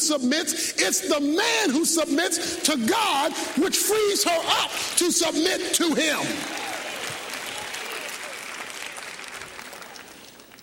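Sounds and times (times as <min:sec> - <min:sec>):
speech: 0:00.0 - 0:06.8
audience clapping: 0:02.6 - 0:10.6.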